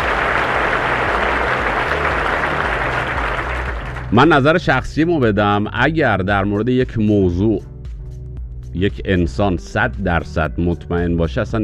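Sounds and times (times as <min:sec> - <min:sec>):
audience applause: 0:00.0 - 0:04.4
speech: 0:04.1 - 0:07.7, 0:08.7 - 0:11.6.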